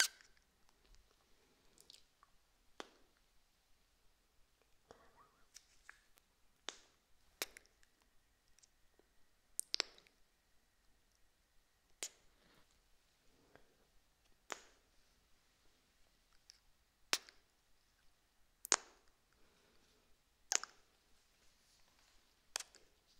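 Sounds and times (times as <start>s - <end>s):
ASMR kiss sounds: 0.0s - 0.3s
soft lip and mouth noises: 0.0s - 0.4s, 1.8s - 3.0s, 5.0s - 8.8s, 9.6s - 10.2s, 11.9s - 12.5s, 22.5s - 22.9s.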